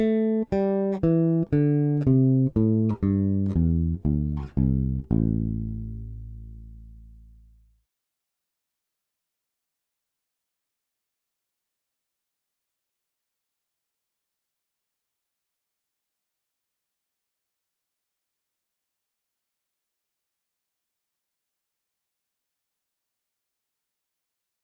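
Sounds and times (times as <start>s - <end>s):
bass guitar with Aguilar Super Double and Nordstrand Big Blade bridge pickups: 0.0s - 7.8s.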